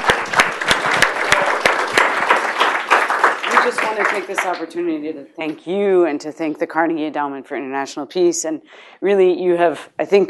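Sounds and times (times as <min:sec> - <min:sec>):
audience applause: 0:00.0 - 0:04.7
speech: 0:03.7 - 0:10.2.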